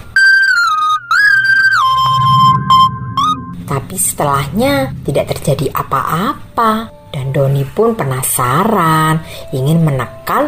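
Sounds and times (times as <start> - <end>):
strange melody from a round object: 0.9 - 7.0
speech: 3.9 - 10.4.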